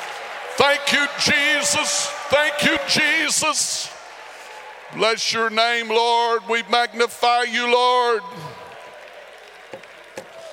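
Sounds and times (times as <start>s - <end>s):
group clapping: 0.0s - 5.1s, 8.3s - 10.5s
speech: 0.9s - 4.0s, 4.9s - 8.6s.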